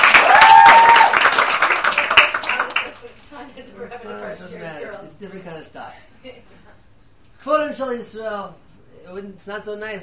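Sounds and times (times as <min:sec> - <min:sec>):
audience clapping during a lesson: 0:00.0 - 0:03.2
speech: 0:07.8 - 0:10.0.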